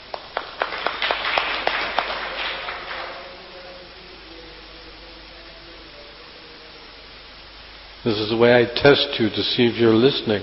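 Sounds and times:
audience clapping: 0.0s - 3.8s
speech: 8.0s - 10.4s.

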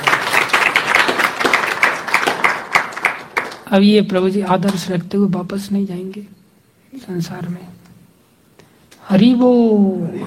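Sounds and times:
audience clapping: 0.0s - 3.8s
speech: 3.7s - 7.8s, 9.1s - 10.2s.

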